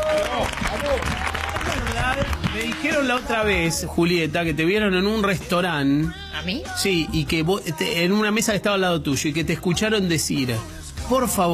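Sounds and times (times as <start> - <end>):
applause: 0.0 - 3.4
speech: 2.1 - 11.5.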